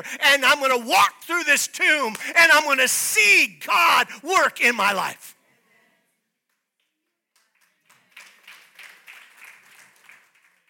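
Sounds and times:
speech: 0.0s - 5.4s
sparse audience clapping: 6.8s - 10.6s.

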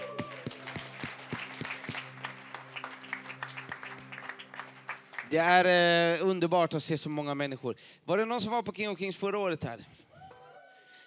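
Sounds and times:
audience applause: 0.0s - 5.5s
speech: 5.3s - 10.0s.

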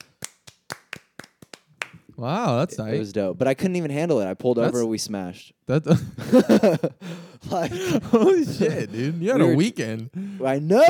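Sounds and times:
hand claps: 0.0s - 2.1s
speech: 2.2s - 10.8s
laughter: 5.9s - 9.6s.

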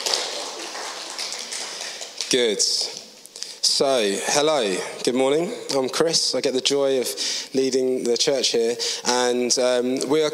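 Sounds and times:
audience clapping: 0.0s - 2.8s
speech: 2.3s - 3.0s, 3.7s - 10.3s.

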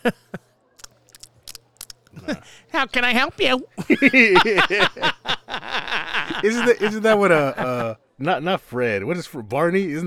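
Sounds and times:
speech: 0.0s - 0.3s, 2.3s - 5.8s, 6.4s - 10.0s
laughter: 0.0s - 0.4s, 3.8s - 8.0s
person chewing gum: 0.8s - 2.2s.

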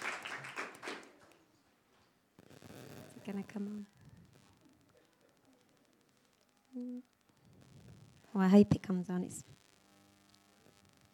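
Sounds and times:
applause: 0.0s - 1.5s
speech: 3.2s - 4.0s, 6.8s - 7.2s, 8.4s - 9.6s.

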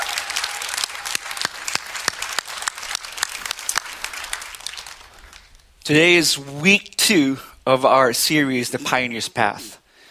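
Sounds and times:
audience clapping: 0.0s - 6.6s
speech: 5.9s - 9.8s.

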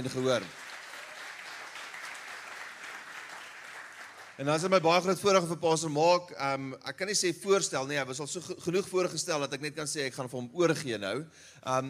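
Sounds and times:
speech: 0.0s - 0.6s, 4.4s - 11.8s
audience clapping hands: 0.0s - 4.9s.

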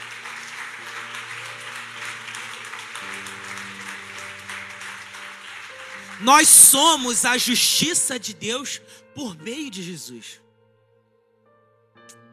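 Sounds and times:
audience applause: 0.0s - 8.4s
speech: 6.2s - 10.4s.

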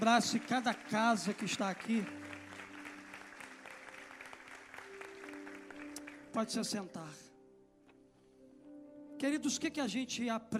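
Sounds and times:
speech: 0.0s - 2.2s, 6.4s - 7.3s, 9.2s - 10.5s
audience applauding: 0.0s - 6.8s.

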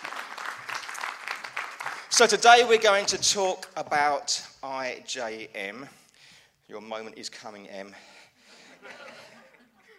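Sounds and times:
round of applause: 0.0s - 2.3s
speech: 2.1s - 6.0s, 6.7s - 8.2s
laughter: 8.6s - 9.9s.

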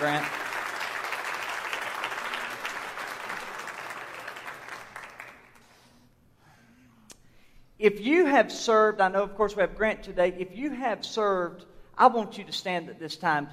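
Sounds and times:
audience clapping: 0.0s - 5.8s
speech: 7.8s - 13.5s.

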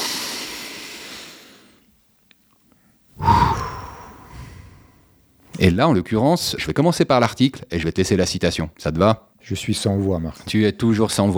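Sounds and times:
deep breathing: 3.2s - 5.2s
speech: 5.6s - 11.3s.

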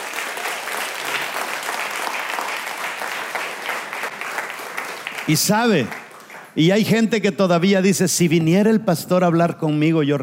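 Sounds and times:
audience applause: 0.0s - 6.6s
speech: 5.3s - 6.0s, 6.6s - 10.2s.

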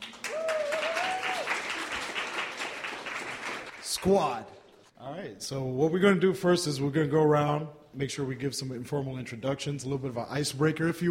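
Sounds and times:
audience applause: 0.0s - 4.2s
speech: 4.0s - 11.1s.

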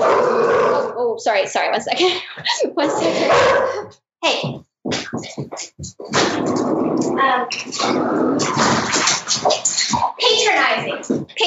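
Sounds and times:
dogs growling and yelping: 0.0s - 1.0s, 2.8s - 4.0s, 6.1s - 10.2s
speech: 1.2s - 11.4s
dogs barking at each other: 3.0s - 4.0s.

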